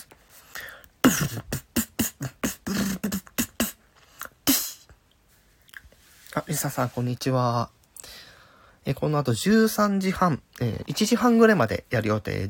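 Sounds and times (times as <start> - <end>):
freestyle beatboxing: 1.0 - 5.0
speech: 6.5 - 7.8, 8.8 - 12.4.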